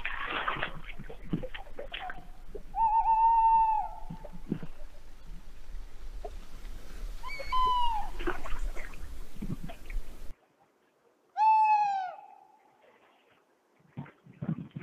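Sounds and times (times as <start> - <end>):
tawny owl calling: 2.0 - 5.4, 7.2 - 9.2, 11.4 - 12.5.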